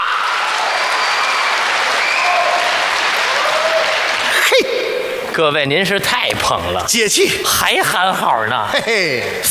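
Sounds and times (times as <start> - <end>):
audience applause: 0.2 - 5.3
speech: 5.4 - 9.4.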